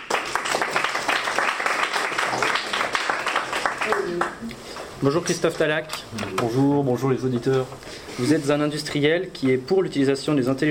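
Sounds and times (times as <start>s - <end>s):
studio audience clapping to welcome guests to a French debate: 0.0s - 4.9s
speech: 4.1s - 10.6s.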